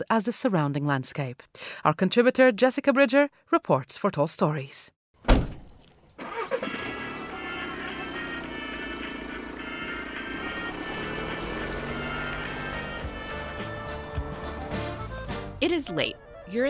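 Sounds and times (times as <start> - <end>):
speech: 0.0 - 5.5, 15.6 - 16.6
imported 2003 Mitsubishi Delica van engine droning in the Caucasus: 6.0 - 15.2.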